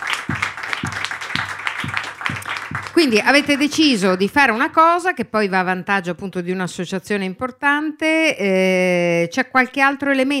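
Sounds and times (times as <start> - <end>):
audience applause at a charity party: 0.0 - 4.0
thumping beat: 0.0 - 4.4
speech: 3.0 - 10.3.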